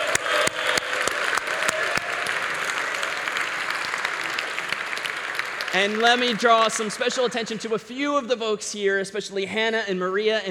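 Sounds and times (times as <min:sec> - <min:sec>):
audience applause: 0:00.0 - 0:08.0
speech: 0:05.8 - 0:10.5.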